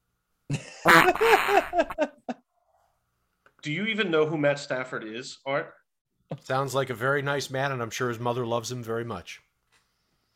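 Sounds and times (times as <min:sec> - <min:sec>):
voice imitating a fart: 0:00.9 - 0:02.0
speech: 0:01.0 - 0:02.2, 0:03.6 - 0:09.4.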